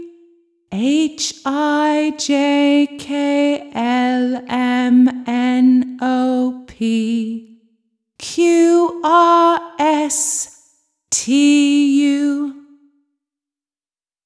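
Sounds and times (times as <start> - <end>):
children's song: 0.8 - 7.4, 8.2 - 10.5, 11.1 - 12.6.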